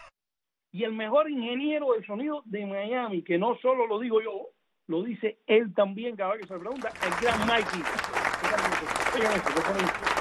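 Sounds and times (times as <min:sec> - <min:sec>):
speech: 0:00.7 - 0:10.1
applause sound effect: 0:06.4 - 0:10.1.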